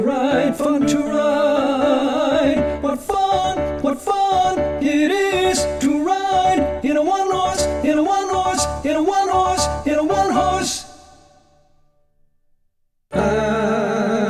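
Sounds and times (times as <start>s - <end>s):
isolated tenor voice singing a practice track: 0.0s - 11.4s, 13.1s - 14.2s.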